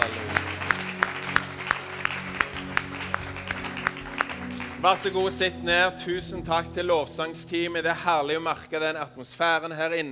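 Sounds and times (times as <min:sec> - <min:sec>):
audience applauding: 0:00.0 - 0:05.9
speech: 0:04.8 - 0:10.0.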